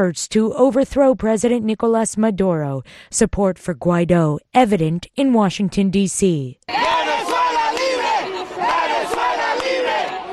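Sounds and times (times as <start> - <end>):
speech: 0.0 - 7.0
protesters chanting outside the Venezuelan embassy: 6.7 - 10.3.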